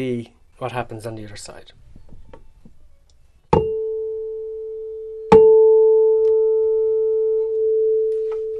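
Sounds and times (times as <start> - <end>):
speech: 0.0 - 1.9
tuning fork struck: 3.5 - 8.5.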